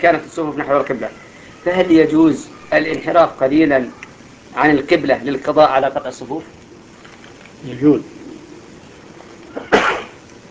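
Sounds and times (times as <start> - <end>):
speech: 0.0 - 6.6, 7.6 - 8.2
person sneezing during a religious lecture: 9.5 - 10.2.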